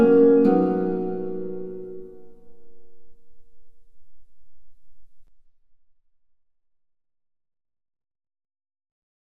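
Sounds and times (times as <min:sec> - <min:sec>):
lute playing: 0:00.0 - 0:03.0.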